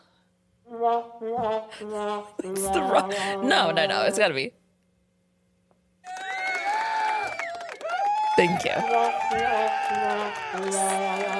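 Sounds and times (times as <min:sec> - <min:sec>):
speech: 0:00.9 - 0:04.6, 0:08.4 - 0:11.3
audience cheering: 0:06.0 - 0:11.3.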